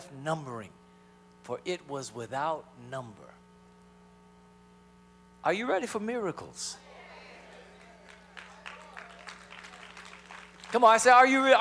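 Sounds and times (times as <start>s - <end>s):
speech: 0.1s - 0.8s, 1.4s - 3.4s, 5.4s - 6.8s, 10.7s - 11.5s
weak audience clapping: 7.5s - 10.8s.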